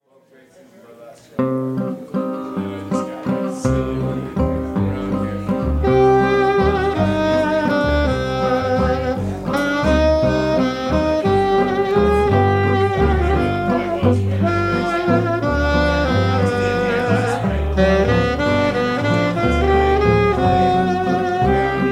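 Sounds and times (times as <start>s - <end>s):
waltz music: 1.4s - 21.9s.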